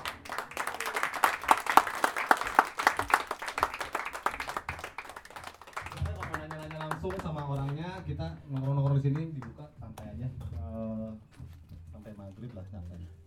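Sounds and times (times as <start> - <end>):
audience applause: 0.0 - 9.6
speech: 8.1 - 10.8, 12.3 - 13.2.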